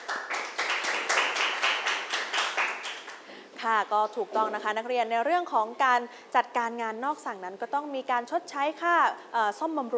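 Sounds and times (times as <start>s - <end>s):
students clapping: 0.0s - 3.3s
speech: 3.6s - 9.9s.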